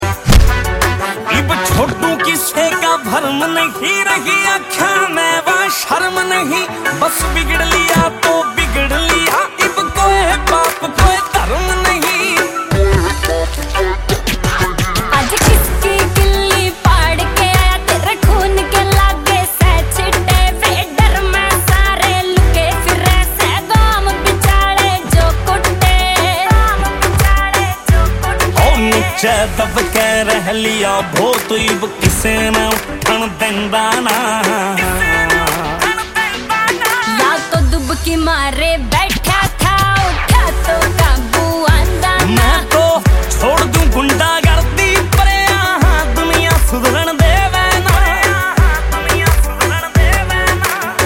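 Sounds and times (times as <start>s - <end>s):
Haryanvi song: 0.0s - 51.0s.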